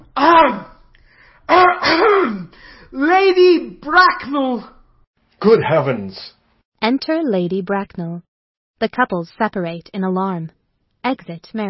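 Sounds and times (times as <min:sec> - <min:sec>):
loud voiced cough: 0:01.5 - 0:02.5
speech: 0:01.5 - 0:04.8, 0:05.4 - 0:11.6.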